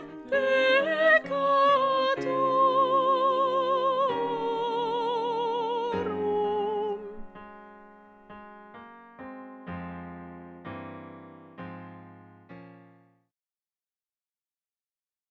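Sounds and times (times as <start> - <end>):
soprano singing a slow Credo: 0.0 - 8.0.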